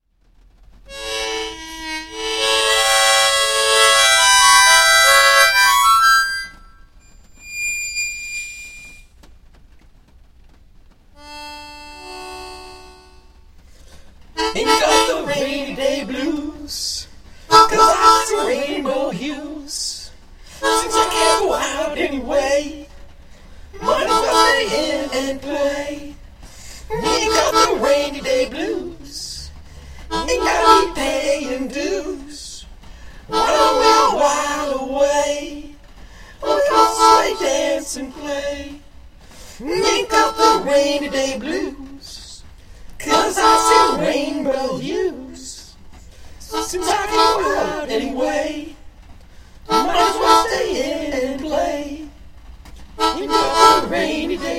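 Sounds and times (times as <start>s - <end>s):
blues music: 0.9s - 8.5s, 11.2s - 13.5s, 14.3s - 19.8s, 20.6s - 22.9s, 23.8s - 32.5s, 33.2s - 35.6s, 36.4s - 38.6s, 39.6s - 42.2s, 43.0s - 45.5s, 46.2s - 48.7s, 49.7s - 52.1s, 52.7s - 54.5s.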